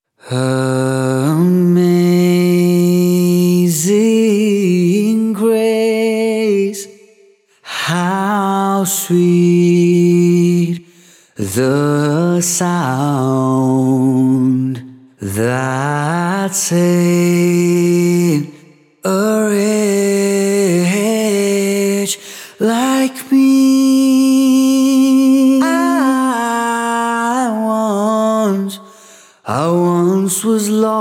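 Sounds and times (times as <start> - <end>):
a cappella singing: 0.2 - 30.9.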